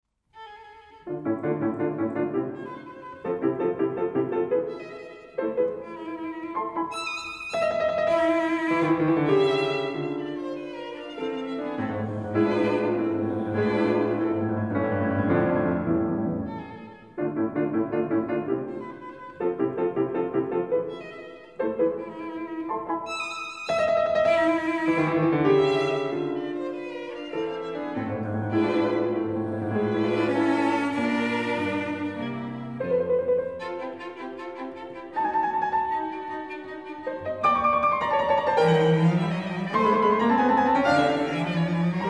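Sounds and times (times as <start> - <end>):
piano trio: 1.1 - 42.0.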